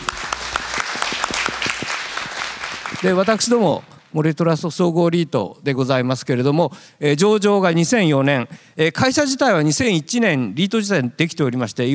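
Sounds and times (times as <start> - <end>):
audience applause: 0.0 - 3.9
speech: 3.0 - 11.9.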